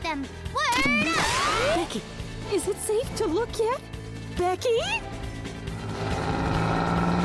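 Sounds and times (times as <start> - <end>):
speech: 0.1 - 5.1
sedan engine droning as it drives away: 5.7 - 7.2.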